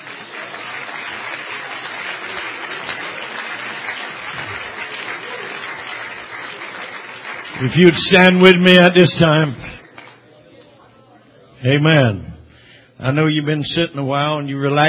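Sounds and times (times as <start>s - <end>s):
church congregation applauding: 0.0s - 10.7s
speech: 7.6s - 9.7s, 11.6s - 12.3s, 13.0s - 14.8s.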